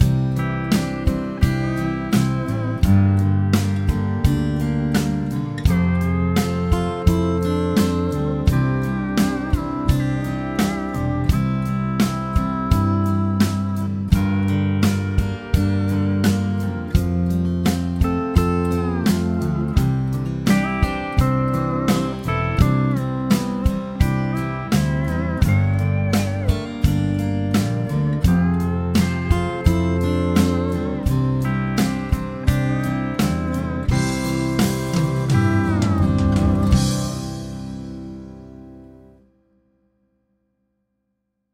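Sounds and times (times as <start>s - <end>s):
chord progression with mixture: 0.0s - 39.2s.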